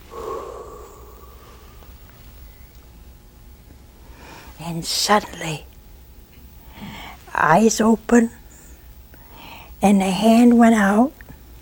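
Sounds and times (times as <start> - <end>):
voice imitating a breath blown into a lifeless figure: 0.0 - 1.8
speech: 4.6 - 5.7, 7.4 - 8.4, 9.8 - 11.2.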